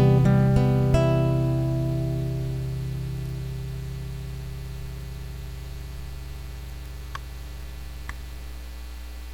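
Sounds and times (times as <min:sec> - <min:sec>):
chords: 0:00.0 - 0:06.8.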